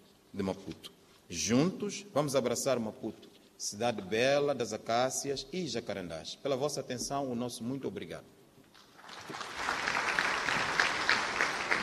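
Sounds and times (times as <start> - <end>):
speech: 0.4 - 8.4
audience applause: 9.0 - 11.8.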